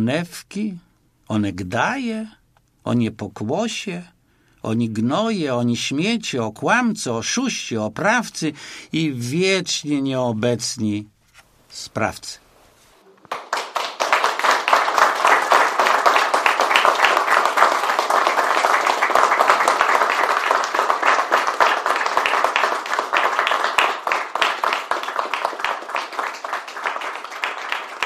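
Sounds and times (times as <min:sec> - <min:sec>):
speech: 0:00.0 - 0:11.1, 0:11.7 - 0:12.4
audience applause: 0:13.3 - 0:28.0.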